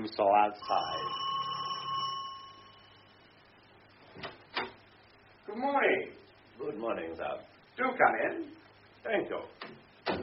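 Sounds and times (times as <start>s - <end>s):
speech: 0.0s - 1.4s, 5.5s - 9.8s
panel alarm bell ringing: 0.6s - 3.2s.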